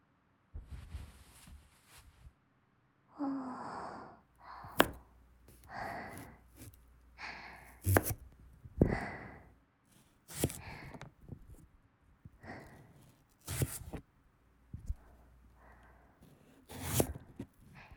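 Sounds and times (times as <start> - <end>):
heavy effortful breathing and sighs: 3.2 - 7.9, 8.8 - 9.5, 10.5 - 11.1, 12.4 - 13.1
knife chopping hard sweet potato: 4.5 - 11.6, 12.4 - 14.0, 16.2 - 17.8.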